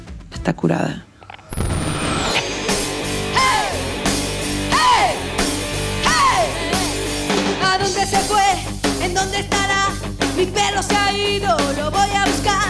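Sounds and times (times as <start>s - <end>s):
speech: 0.4s - 1.1s, 7.8s - 12.6s
descending feedback squeal: 1.2s - 5.1s
punk rock song with distorted guitars, drums and shouted vocal: 1.6s - 12.6s.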